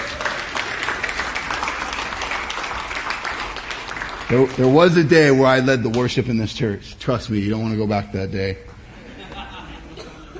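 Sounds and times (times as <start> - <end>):
audience applause for the band: 0.0 - 5.1
speech: 4.3 - 8.7
laughter: 8.9 - 10.3.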